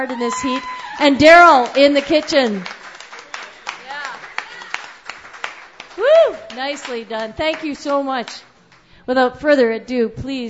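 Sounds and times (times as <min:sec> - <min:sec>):
speech: 0:00.0 - 0:02.8, 0:06.6 - 0:08.5, 0:09.1 - 0:10.4
crowd round of applause: 0:00.0 - 0:08.4.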